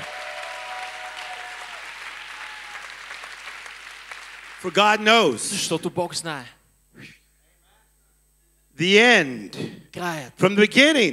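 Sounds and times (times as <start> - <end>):
audience applause: 0.0 - 5.0
speech: 4.6 - 7.2, 8.8 - 11.1.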